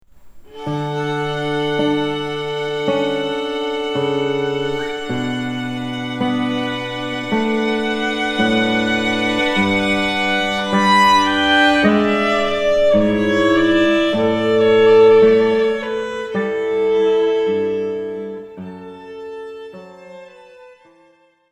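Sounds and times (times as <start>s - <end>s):
orchestral piece: 0.5s - 18.8s.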